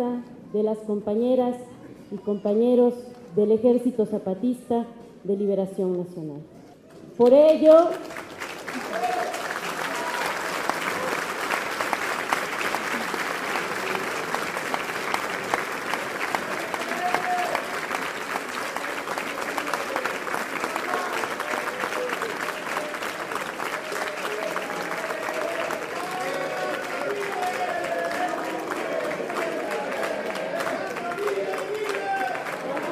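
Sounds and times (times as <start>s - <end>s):
speech: 0.0s - 6.6s, 7.2s - 8.2s
audience applause: 7.9s - 32.9s.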